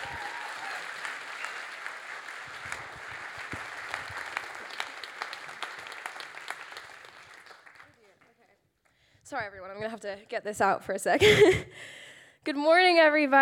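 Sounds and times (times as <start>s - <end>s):
congregation clapping to welcome a preacher at a church service: 0.0s - 8.5s
speech: 9.3s - 13.4s.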